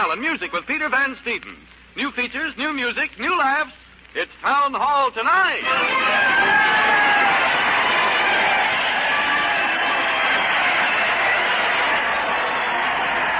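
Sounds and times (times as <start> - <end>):
speech: 0.0 - 6.9
crowd cheering: 5.5 - 13.3.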